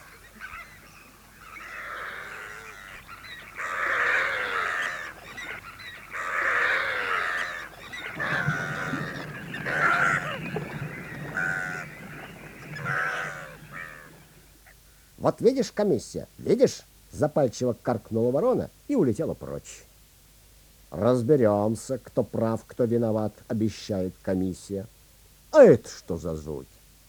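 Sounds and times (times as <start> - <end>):
flock of doves crying out loudly together: 0.0 - 15.1
speech: 15.2 - 19.9, 21.0 - 24.9, 25.5 - 26.8.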